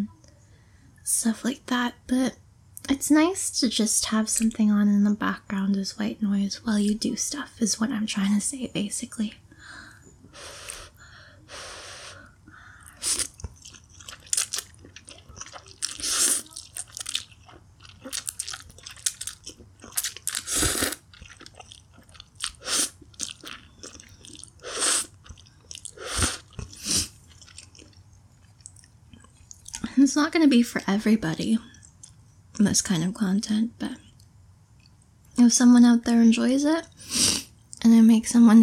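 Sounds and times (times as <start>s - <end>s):
speech: 1.1s - 9.8s, 30.3s - 31.8s, 32.6s - 34.1s, 35.4s - 36.9s, 38.1s - 38.6s
moist munching: 12.2s - 29.9s
chewing and crunching food while eating: 12.7s - 29.8s.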